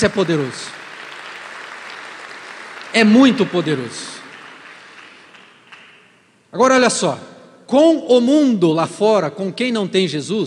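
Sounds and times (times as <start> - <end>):
speech: 0.0 - 0.8, 2.9 - 4.1, 6.5 - 10.4
audience applause: 0.0 - 6.2.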